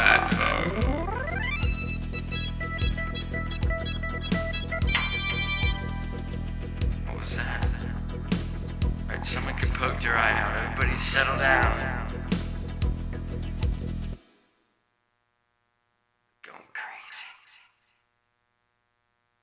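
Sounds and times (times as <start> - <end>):
soundcheck: 0.0 - 14.3.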